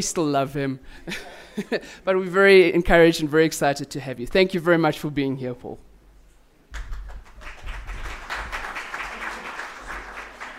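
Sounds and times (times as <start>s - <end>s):
speech: 0.0s - 5.9s
audience applause: 6.8s - 10.5s.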